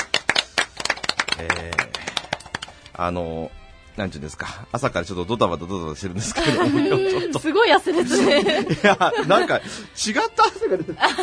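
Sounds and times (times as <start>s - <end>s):
studio clapping: 0.0s - 3.0s
speech: 1.4s - 2.1s, 3.0s - 11.2s
laughter: 6.2s - 11.2s.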